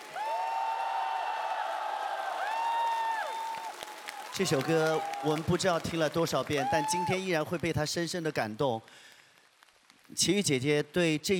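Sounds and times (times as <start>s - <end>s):
crowd whooping and cheering: 0.0s - 5.8s, 6.4s - 7.3s
large audience applause: 0.0s - 7.4s
speech: 4.4s - 9.1s, 10.1s - 11.3s.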